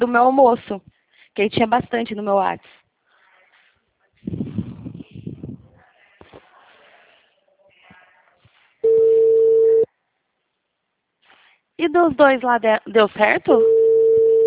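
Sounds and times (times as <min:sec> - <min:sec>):
speech: 0:00.0 - 0:02.8, 0:04.2 - 0:04.7, 0:11.8 - 0:13.8
rustling and handling noise: 0:00.6 - 0:09.0, 0:11.1 - 0:11.8
telephone ringback tone: 0:08.8 - 0:09.9, 0:13.6 - 0:14.4.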